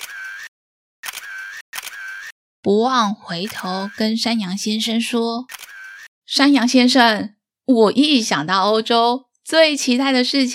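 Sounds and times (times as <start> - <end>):
camera shutter clicking: 0.0 - 2.3, 5.5 - 6.1
speech: 2.6 - 5.6, 6.3 - 10.5.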